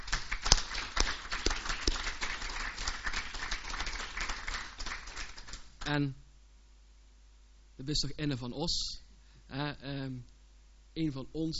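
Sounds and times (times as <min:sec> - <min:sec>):
audience applause: 0:00.0 - 0:05.7
speech: 0:05.9 - 0:06.2, 0:07.8 - 0:10.3, 0:11.0 - 0:11.5.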